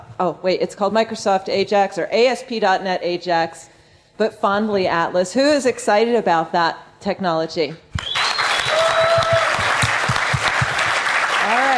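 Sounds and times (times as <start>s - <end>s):
speech: 0.2s - 7.8s
faint whistle-like tone: 8.0s - 8.7s
audience clapping: 8.0s - 11.7s.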